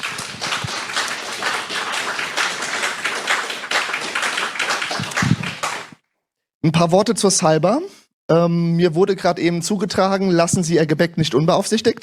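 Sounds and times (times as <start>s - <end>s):
audience applause: 0.0s - 6.0s
speech: 6.6s - 12.0s.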